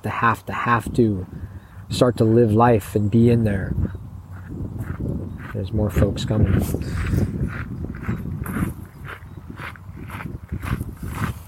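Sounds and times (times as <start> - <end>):
speech: 0.0 - 4.0, 5.5 - 8.6
footsteps walking on a gravel path: 3.8 - 11.4.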